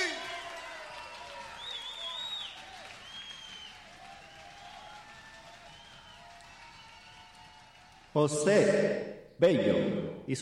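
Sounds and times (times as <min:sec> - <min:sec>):
audience applause: 0:00.0 - 0:08.2
speech: 0:08.2 - 0:10.4.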